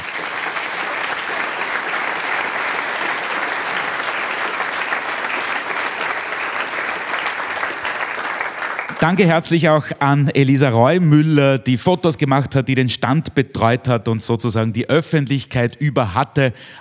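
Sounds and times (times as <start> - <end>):
audience applause: 0.0 - 9.8
speech: 9.0 - 16.8.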